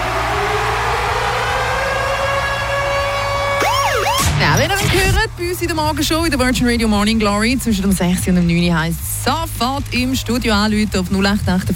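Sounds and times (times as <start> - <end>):
radio contest alarm siren jingle: 0.0 - 5.2
speech: 4.6 - 11.7.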